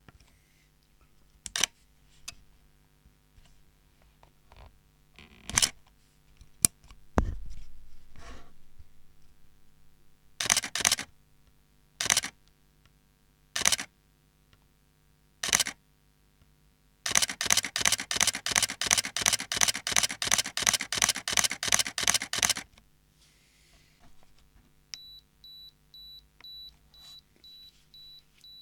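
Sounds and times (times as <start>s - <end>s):
camera shutter: 5.5s - 5.8s, 10.4s - 11.1s, 12.0s - 12.4s, 13.6s - 13.9s, 15.4s - 15.8s, 17.1s - 22.7s.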